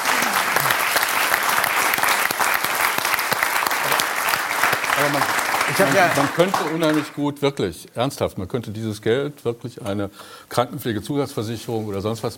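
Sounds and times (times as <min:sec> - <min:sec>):
audience applause: 0:00.0 - 0:07.2
speech: 0:05.0 - 0:12.3.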